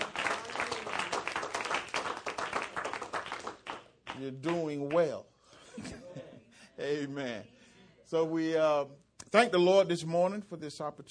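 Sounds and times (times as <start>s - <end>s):
audience applause: 0.0s - 4.2s
speech: 4.2s - 6.0s, 6.8s - 11.0s.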